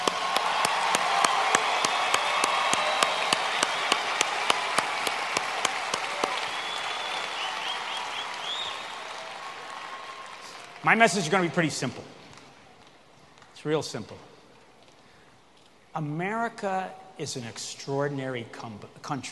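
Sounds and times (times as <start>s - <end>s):
students applauding: 0.0s - 11.6s
speech: 10.8s - 12.2s, 13.6s - 14.3s, 16.0s - 19.3s.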